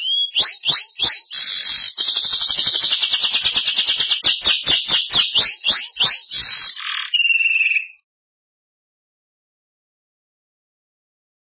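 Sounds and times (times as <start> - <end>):
Belgian canary trilling and whistling: 0.0 - 8.0.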